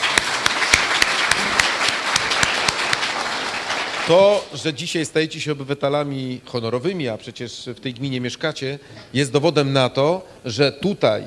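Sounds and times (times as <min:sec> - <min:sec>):
audience applause: 0:00.0 - 0:04.6
speech: 0:04.1 - 0:11.2.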